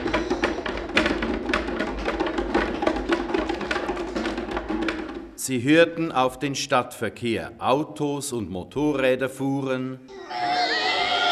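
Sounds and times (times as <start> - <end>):
donkey hooves trotting on cobblestones: 0.0 - 5.4
speech: 5.5 - 10.4.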